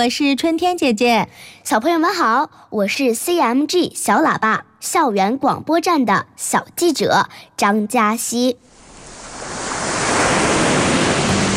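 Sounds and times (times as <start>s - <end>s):
speech: 0.0s - 8.7s
sea water crashing against rocks: 8.7s - 11.5s.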